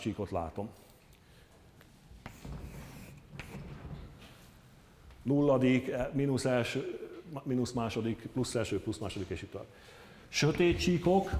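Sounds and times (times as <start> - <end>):
speech: 0.0 - 0.9, 5.2 - 11.3
writing an index on a board: 2.2 - 3.9.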